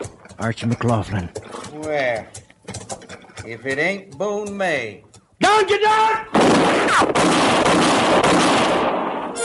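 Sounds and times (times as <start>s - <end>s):
speech: 0.4s - 2.4s, 3.4s - 9.0s
rapid gunfire: 6.3s - 9.3s.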